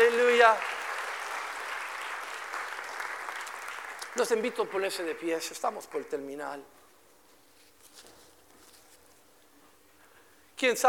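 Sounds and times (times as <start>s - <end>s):
audience applauding: 0.0s - 5.5s
speech: 0.4s - 0.8s, 4.2s - 6.8s, 10.6s - 10.8s.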